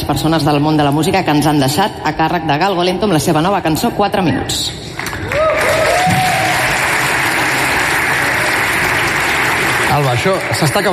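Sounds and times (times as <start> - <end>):
speech: 0.1 - 5.4, 10.0 - 10.9
audience applause: 5.0 - 10.9.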